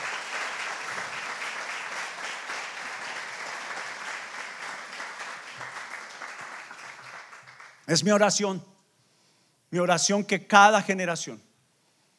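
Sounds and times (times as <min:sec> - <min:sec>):
audience applause: 0:00.0 - 0:07.9
speech: 0:07.9 - 0:08.7, 0:09.7 - 0:11.5.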